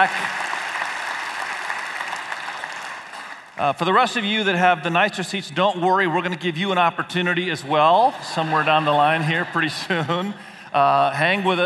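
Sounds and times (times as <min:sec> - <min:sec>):
speech: 0:00.0 - 0:00.4, 0:03.6 - 0:11.6
audience applause: 0:00.0 - 0:03.6, 0:07.6 - 0:10.3
laughter: 0:06.7 - 0:11.6.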